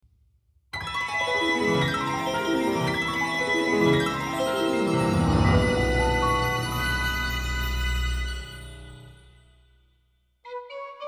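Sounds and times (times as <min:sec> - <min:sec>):
calm evening organ music: 0:01.0 - 0:09.4.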